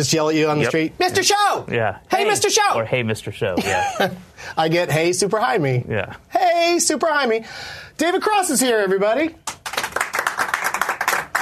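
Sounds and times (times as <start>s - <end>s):
speech: 0.0s - 9.4s
small audience clapping: 9.4s - 11.4s.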